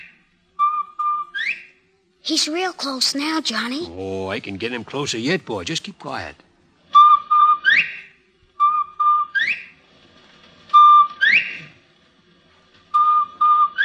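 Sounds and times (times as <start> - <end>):
bobwhite quail whistling its call: 0.0 - 1.8, 6.9 - 9.8, 10.7 - 11.8, 12.9 - 13.8
speech: 2.3 - 6.5.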